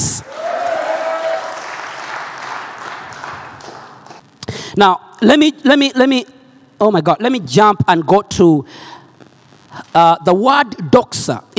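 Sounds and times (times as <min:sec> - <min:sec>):
audience clapping hands: 0:00.2 - 0:04.3
speech: 0:04.8 - 0:08.8, 0:10.0 - 0:11.5.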